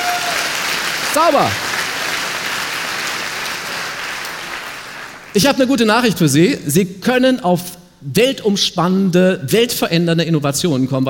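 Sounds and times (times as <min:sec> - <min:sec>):
audience applause: 0:00.0 - 0:05.4
speech: 0:01.2 - 0:01.6, 0:05.3 - 0:11.0.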